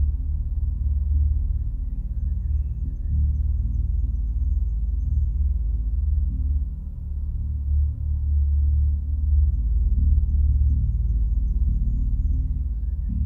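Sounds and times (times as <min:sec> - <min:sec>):
low frequency tone: 0:00.0 - 0:13.2.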